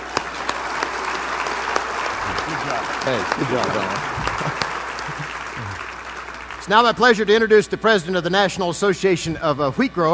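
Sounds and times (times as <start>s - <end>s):
wheat growers audience applause: 0.0s - 7.6s
speech: 2.8s - 4.6s, 6.6s - 10.1s.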